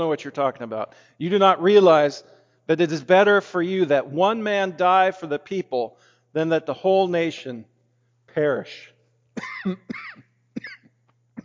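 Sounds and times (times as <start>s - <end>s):
speech: 0.0s - 7.7s, 8.3s - 10.8s
harsh throaty coughing after swallowing wrong: 9.4s - 11.4s.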